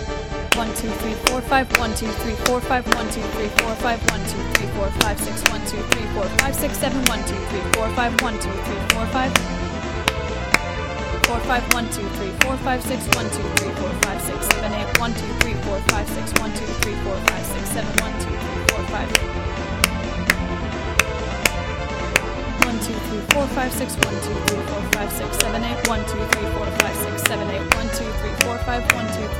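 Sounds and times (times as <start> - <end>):
person counting aloud: 0.5 - 9.4, 11.2 - 20.0, 22.6 - 29.3
hand clapping in an irregular rhythm: 0.5 - 29.3
speech: 0.6 - 9.6, 11.3 - 19.7, 22.8 - 29.3.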